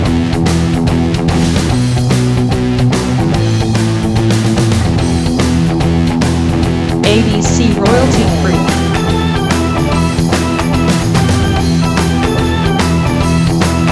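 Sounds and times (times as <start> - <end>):
blues rock music: 0.0 - 13.9.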